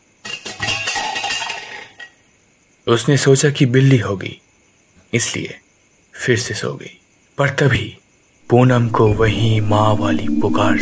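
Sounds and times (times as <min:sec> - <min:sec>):
metal utensils clattering onto a hard floor: 0:00.2 - 0:02.2
speech: 0:02.9 - 0:04.5, 0:05.1 - 0:05.6, 0:06.2 - 0:10.8.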